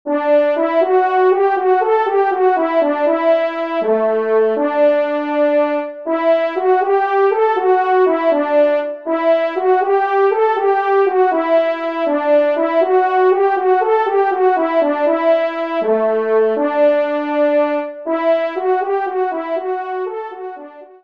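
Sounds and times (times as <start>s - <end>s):
fanfare: 0.1s - 21.0s.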